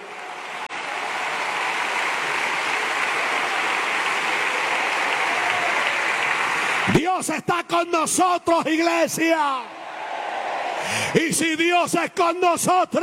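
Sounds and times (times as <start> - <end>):
applause: 0.0 - 7.4, 9.8 - 11.3
speech: 7.2 - 9.8, 10.9 - 13.0.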